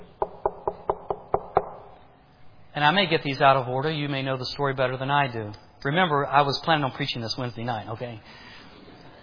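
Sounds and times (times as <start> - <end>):
knocking on a door: 0.0 - 1.8
speech: 2.8 - 8.5.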